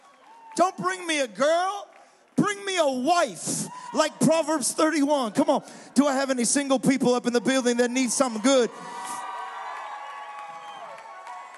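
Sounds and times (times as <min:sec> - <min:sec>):
high shouts and whoops: 0:00.0 - 0:00.8, 0:03.2 - 0:05.6, 0:08.0 - 0:11.5
audience yelling and cheering: 0:00.0 - 0:11.5
speech: 0:00.6 - 0:09.0.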